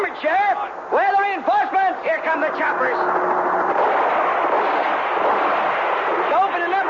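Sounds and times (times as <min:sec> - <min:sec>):
speech: 0:00.1 - 0:04.1
dense barrage of rapid gunfire: 0:03.0 - 0:06.8.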